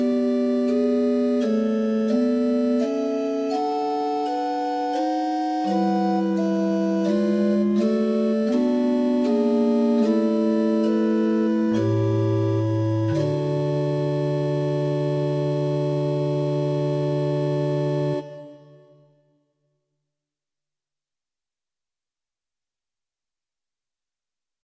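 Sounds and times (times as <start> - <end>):
prelude in equal temperament: 0.0 - 19.2.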